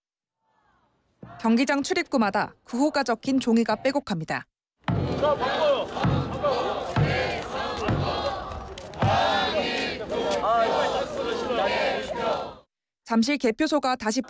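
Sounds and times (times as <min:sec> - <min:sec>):
speech: 0:01.4 - 0:04.5, 0:05.2 - 0:06.1, 0:13.1 - 0:14.2
protesters chanting at a demonstration: 0:04.9 - 0:12.7.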